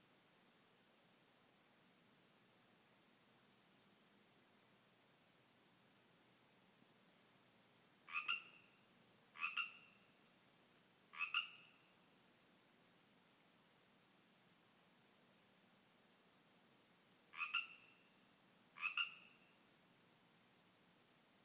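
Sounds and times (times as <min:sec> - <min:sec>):
Pacific tree frogs calling in a yard: 0:08.0 - 0:10.2, 0:11.1 - 0:11.9, 0:17.3 - 0:18.2, 0:18.8 - 0:19.6.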